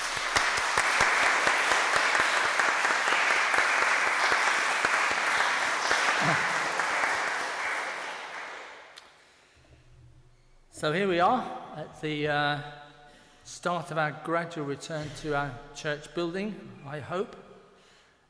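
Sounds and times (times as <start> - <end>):
audience applause: 0.0 - 9.0
speech: 10.8 - 12.8, 13.5 - 17.4.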